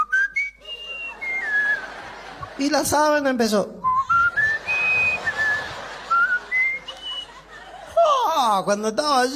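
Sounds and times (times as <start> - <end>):
person whistling a flute-like melody: 0.0 - 1.9, 3.8 - 7.4
laughter: 0.6 - 3.2, 4.1 - 8.5
speech: 2.6 - 3.8, 8.5 - 9.3.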